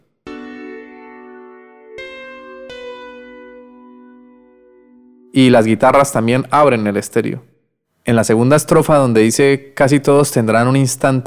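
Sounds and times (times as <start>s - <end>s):
Hammond organ keyboard: 0.0s - 6.2s
speech: 5.3s - 11.2s.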